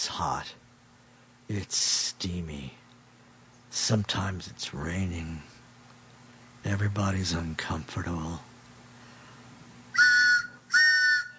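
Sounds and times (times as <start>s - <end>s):
speech: 0.1s - 0.6s, 1.5s - 2.8s, 3.7s - 5.5s, 6.6s - 8.5s
train whistle blasts: 9.9s - 11.3s.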